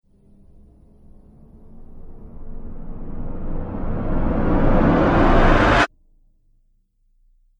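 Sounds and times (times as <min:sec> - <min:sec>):
cinematic riser with abrupt stop: 0:00.1 - 0:05.9.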